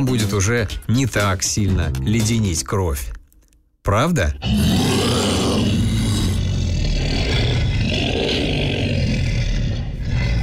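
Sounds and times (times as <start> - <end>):
speech: 0.0 - 3.2, 3.9 - 4.9
human voice imitating a monster roar: 4.4 - 10.4.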